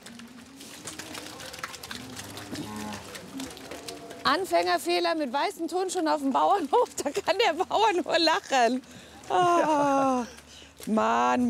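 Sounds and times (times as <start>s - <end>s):
cows on an organic farm mooing when let out to pasture: 1.0s - 4.3s
speech: 4.3s - 11.4s.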